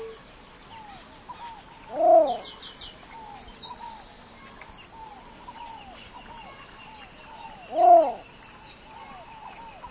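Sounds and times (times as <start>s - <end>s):
least bittern cooing: 1.9s - 2.4s, 7.7s - 8.2s.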